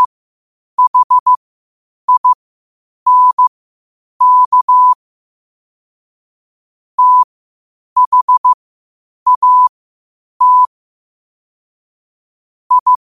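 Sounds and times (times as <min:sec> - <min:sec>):
morse code at 5 wpm: 0:00.8 - 0:01.4, 0:02.1 - 0:02.4, 0:03.1 - 0:03.5, 0:04.2 - 0:05.0, 0:07.0 - 0:07.3, 0:08.0 - 0:08.6, 0:09.3 - 0:09.7, 0:10.4 - 0:10.7, 0:12.7 - 0:12.9.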